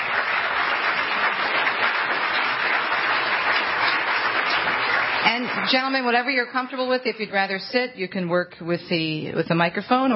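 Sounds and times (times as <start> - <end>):
audience applause: 0.0 - 6.2
speech: 5.3 - 10.1.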